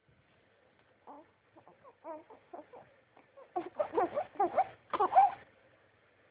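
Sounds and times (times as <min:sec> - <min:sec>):
hungry baby girl crying: 0:01.1 - 0:05.4.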